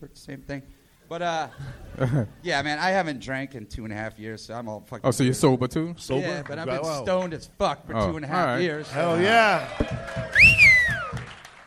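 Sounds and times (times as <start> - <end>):
speech: 0.0 - 10.8
laughter: 1.3 - 2.5
crowd clapping and cheering: 8.8 - 11.6
loud sliding whistle: 10.3 - 11.2.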